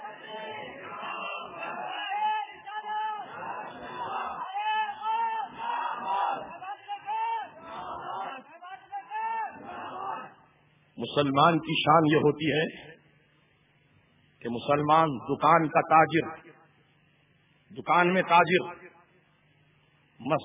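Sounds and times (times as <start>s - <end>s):
crowd chanting a religious slogan at an Islamic sermon: 0.0s - 10.5s
speech: 11.0s - 12.9s, 14.5s - 16.4s, 17.8s - 18.8s, 20.3s - 20.4s.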